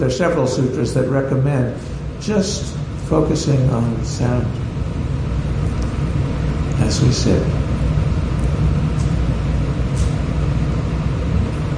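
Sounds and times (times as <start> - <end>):
speech: 0.0 - 4.6, 6.9 - 7.6
air conditioner hum: 0.0 - 11.7.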